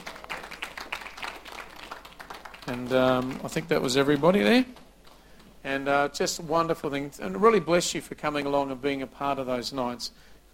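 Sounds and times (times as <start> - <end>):
church congregation applauding newly baptized people: 0.0 - 5.6
speech: 2.7 - 4.8, 5.6 - 10.5.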